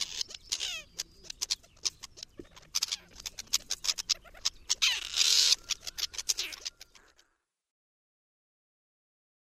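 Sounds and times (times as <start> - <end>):
partridge: 0.0 - 7.4.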